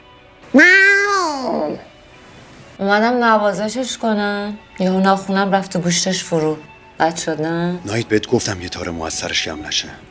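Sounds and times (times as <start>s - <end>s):
speech: 0.5s - 0.8s, 2.8s - 10.1s
cat meowing: 0.5s - 1.9s.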